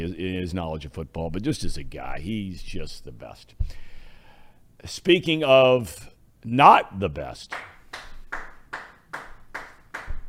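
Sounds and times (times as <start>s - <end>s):
speech: 0.0s - 3.9s, 4.8s - 7.7s
person clapping: 7.5s - 10.2s.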